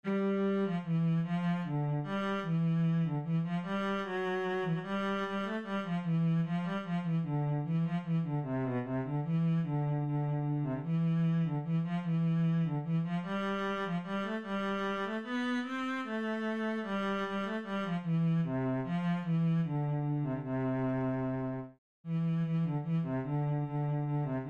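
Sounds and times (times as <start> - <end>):
cello playing a Kyrie: 0.0 - 24.4.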